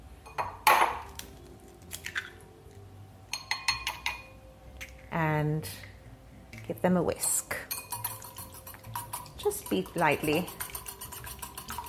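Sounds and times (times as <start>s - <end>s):
two large eggs cracking in a kitchen: 1.0s - 2.5s, 8.0s - 11.8s
light clinks of kitchenware: 3.3s - 4.4s, 7.5s - 11.8s
speech: 5.2s - 5.9s, 6.7s - 7.6s, 9.5s - 10.6s.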